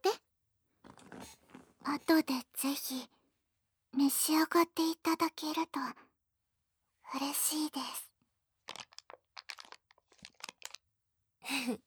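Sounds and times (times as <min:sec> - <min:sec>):
speech: 0:01.3 - 0:03.2, 0:03.9 - 0:06.0, 0:07.1 - 0:08.1, 0:11.5 - 0:11.8
person crunching and chewing sweets: 0:08.6 - 0:10.9.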